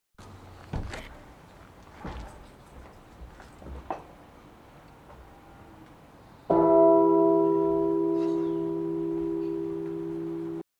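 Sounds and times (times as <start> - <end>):
bell ringing: 6.5 - 10.6.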